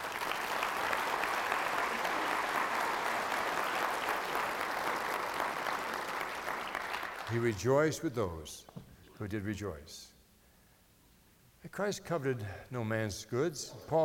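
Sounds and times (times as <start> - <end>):
audience applause: 0.0 - 7.4
speech: 7.3 - 10.1, 11.6 - 14.0.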